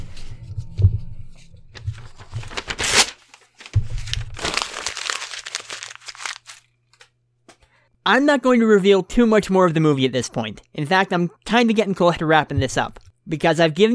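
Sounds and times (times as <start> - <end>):
paper script being crumpled up: 1.8 - 7.1
speech: 8.1 - 13.9.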